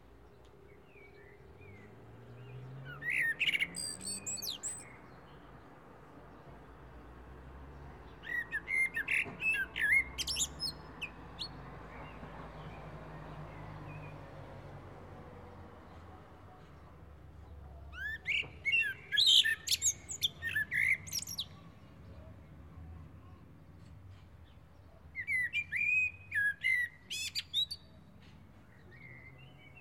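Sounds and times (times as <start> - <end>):
common blackbird singing: 0.7 - 5.5, 8.0 - 14.2, 17.9 - 22.2, 24.4 - 29.8.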